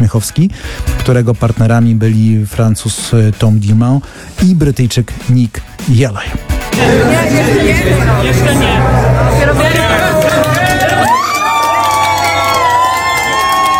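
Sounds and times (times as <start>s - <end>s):
speech: 0.0s - 10.0s
team cheering and shouting after a race win: 6.8s - 13.7s.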